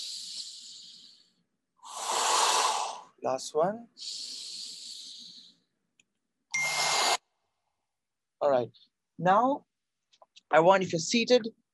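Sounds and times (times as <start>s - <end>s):
deep breathing in a guided breathing exercise: 0.0s - 3.2s, 4.0s - 5.7s
speech: 3.2s - 4.4s, 8.4s - 9.7s, 10.5s - 11.6s.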